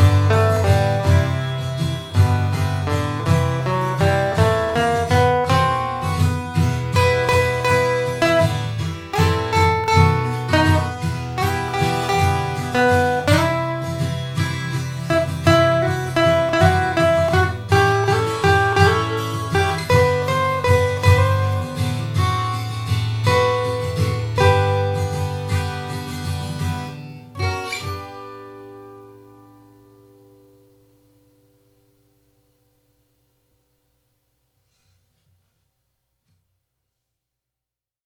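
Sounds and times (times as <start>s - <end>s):
strings playing: 0.0s - 29.1s.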